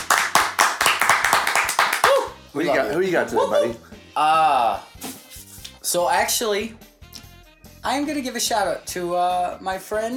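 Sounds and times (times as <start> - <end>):
hand clapping applause: 0.0 - 2.4
speech: 2.6 - 5.1, 5.8 - 6.9, 7.8 - 10.1.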